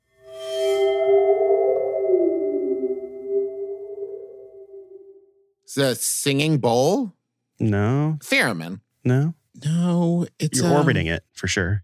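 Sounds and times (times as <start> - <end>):
waterphone with water sloshing inside, eerie sustained tones: 0.1 - 5.2
speech: 5.8 - 11.8.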